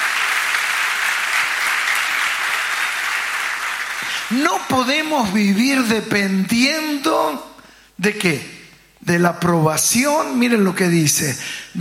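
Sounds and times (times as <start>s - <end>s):
audience applause: 0.0s - 4.5s
speech: 4.3s - 11.8s.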